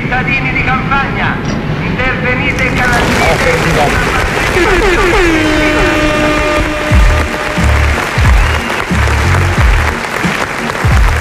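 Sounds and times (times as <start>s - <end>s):
speech: 0.2s - 1.5s
thunderous applause: 2.6s - 11.1s.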